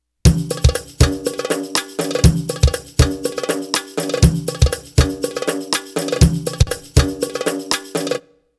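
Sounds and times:
Arabic rhythm percussion: 0:00.3 - 0:08.3.

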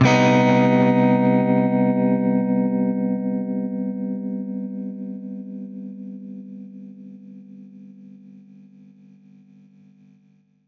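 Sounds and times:
baritone guitar C minor major seventh chord: 0:00.0 - 0:05.5.

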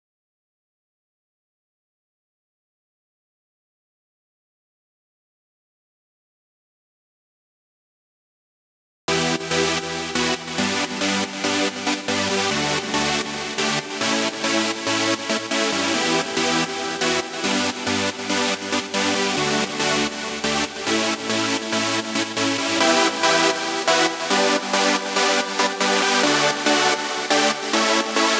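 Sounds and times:
140 BPM intro chords without sidechain: 0:09.1 - 0:28.3.

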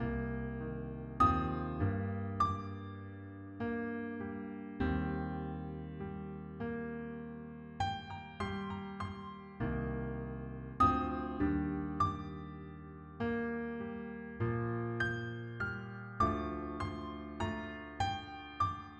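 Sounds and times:
piano loop in G minor at 100 BPM: 0:00.0 - 0:18.9.

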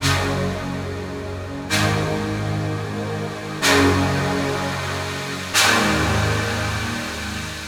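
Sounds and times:
Nord synth pads: 0:00.0 - 0:07.6.

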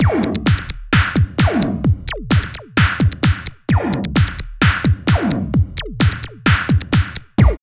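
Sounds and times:
industrial techno music: 0:00.0 - 0:07.6.

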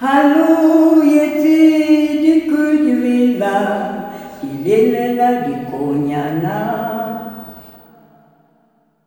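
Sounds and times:
solo woman singing a lullaby: 0:00.0 - 0:07.6.

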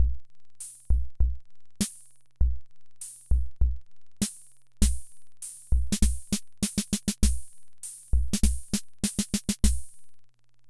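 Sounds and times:
Hammond Auto-Vari 64 drum machine loop: 0:00.9 - 0:01.4, 0:02.4 - 0:10.0.

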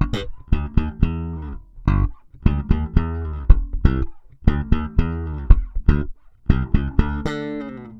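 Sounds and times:
samba bass: 0:00.0 - 0:07.9.

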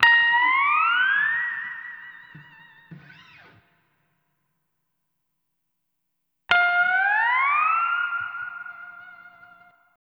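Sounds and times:
lounge steel guitar in A sharp: 0:00.0 - 0:03.8, 0:06.5 - 0:09.8.

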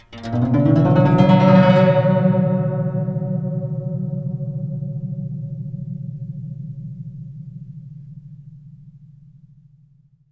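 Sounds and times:
guqin plucked: 0:00.0 - 0:06.3.

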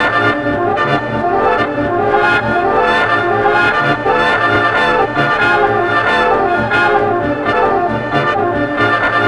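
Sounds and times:
surreal 1940s swing music: 0:00.0 - 0:09.2.

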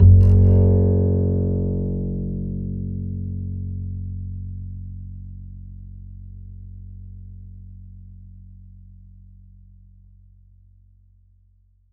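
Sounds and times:
upright acoustic bass in E: 0:00.0 - 0:09.8.

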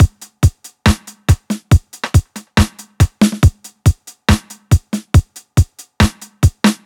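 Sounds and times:
drum loops: 0:00.0 - 0:06.8.

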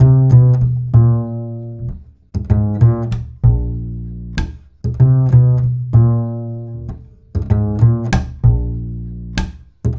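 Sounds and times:
bass line: 0:00.0 - 0:09.9.

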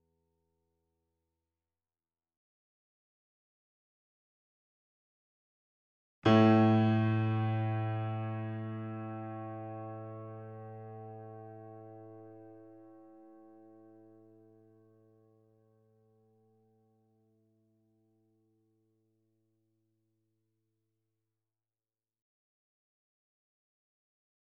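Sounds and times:
grand piano notes C2 E2 A2: 0:06.3 - 0:13.6.

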